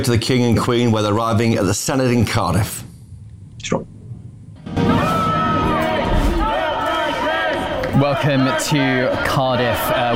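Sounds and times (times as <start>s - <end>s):
speech: 0.0s - 2.9s, 3.6s - 3.9s, 8.0s - 10.1s
crowd of protesters shouting and cheering outside the Senate in Cardiff: 4.7s - 10.1s.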